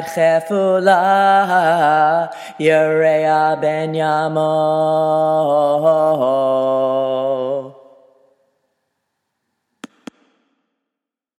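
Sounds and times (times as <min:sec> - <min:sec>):
taamim cantillation chanting: 0:00.0 - 0:08.8.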